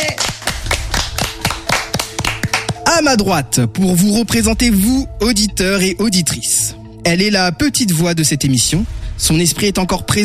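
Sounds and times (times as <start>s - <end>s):
small group applause: 0.0s - 2.8s
speech: 3.0s - 10.2s.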